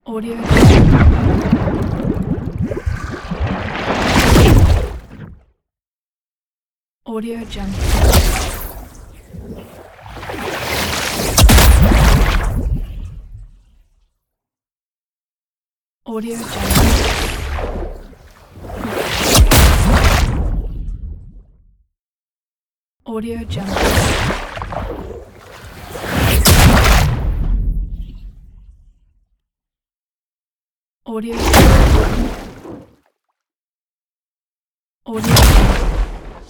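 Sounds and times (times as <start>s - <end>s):
water cast: 0.3s - 5.4s, 7.7s - 13.1s, 16.5s - 20.7s, 23.5s - 27.7s, 31.4s - 33.0s, 35.1s - 36.4s.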